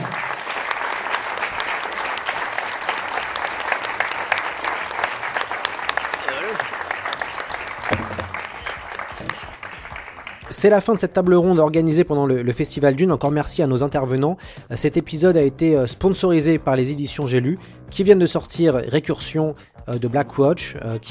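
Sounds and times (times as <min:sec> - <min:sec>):
audience applause: 0:00.0 - 0:10.6
speech: 0:10.6 - 0:21.1.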